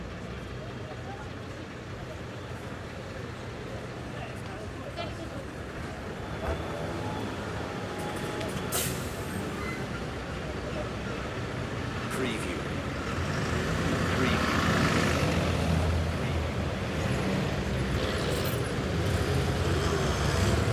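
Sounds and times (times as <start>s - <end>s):
street traffic in Italy: 0.0s - 20.7s.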